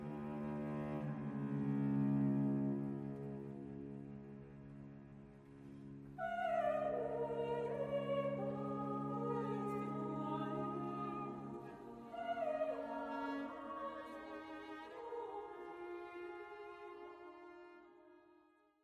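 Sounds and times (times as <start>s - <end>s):
cello: 0.0s - 18.6s
choir singing: 6.2s - 16.7s.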